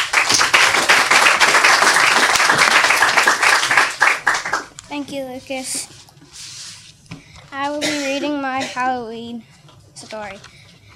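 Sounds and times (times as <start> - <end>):
audience applause for the next author at a reading event: 0.0 - 4.7
speech: 5.0 - 6.0, 7.5 - 9.5, 10.1 - 10.5.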